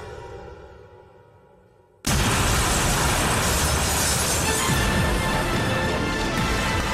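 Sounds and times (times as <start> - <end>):
explosion: 2.0 - 6.8.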